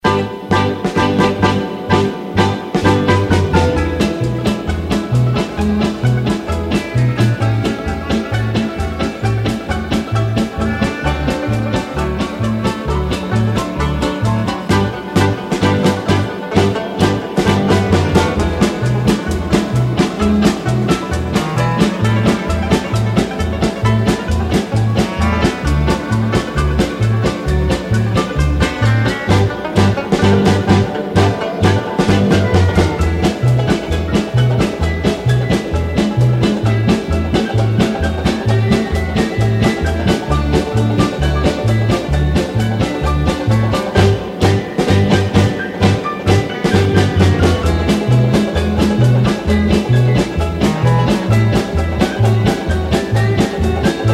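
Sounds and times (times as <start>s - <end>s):
music: 0.0s - 54.1s.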